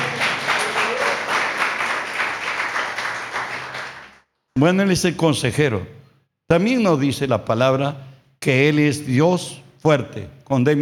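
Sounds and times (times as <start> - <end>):
audience applauding: 0.0 - 4.2
speech: 4.6 - 10.8.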